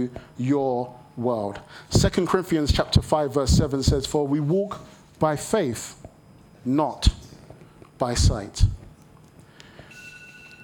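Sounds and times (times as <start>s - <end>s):
speech: 0.0s - 7.2s, 8.0s - 8.8s
phone alarm, steady high-pitched electronic tone: 9.9s - 10.6s.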